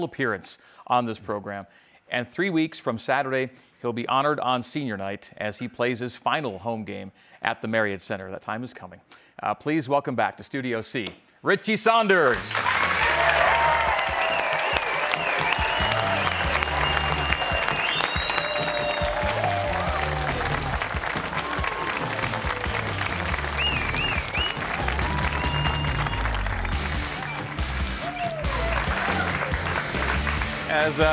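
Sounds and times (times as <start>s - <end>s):
speech: 0.0s - 12.8s, 31.0s - 31.1s
studio audience standing ovation at Studio C: 12.2s - 31.1s
shouts and whoops: 12.3s - 22.8s, 24.6s - 29.7s.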